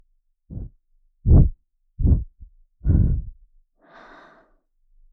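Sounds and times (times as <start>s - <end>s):
person gently blowing into left ear for sleep ASMR: 0.5s - 3.3s.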